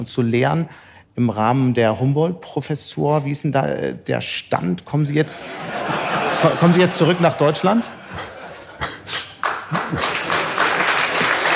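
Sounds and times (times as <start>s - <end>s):
speech: 0.0s - 8.3s, 9.9s - 10.2s
laughter: 5.2s - 11.5s
audience applause: 9.2s - 11.5s.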